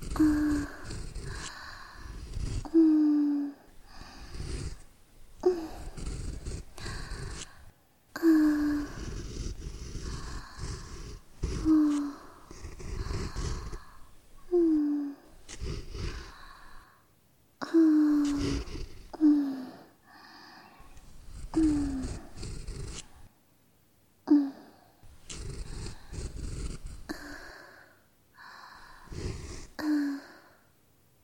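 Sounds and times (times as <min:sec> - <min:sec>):
ear cleaning: 0:00.0 - 0:03.0, 0:03.7 - 0:16.8, 0:17.9 - 0:19.2, 0:20.9 - 0:23.3, 0:25.1 - 0:27.5, 0:29.0 - 0:29.8
looped breathing: 0:00.0 - 0:17.1, 0:17.9 - 0:23.3, 0:24.6 - 0:30.7.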